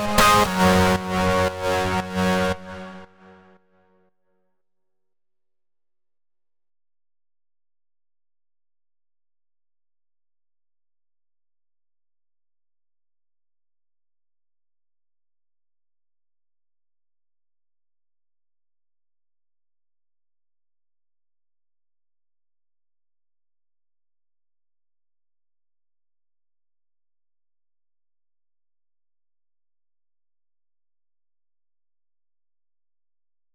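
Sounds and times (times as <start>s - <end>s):
lead synth in F minor: 0.0s - 3.5s.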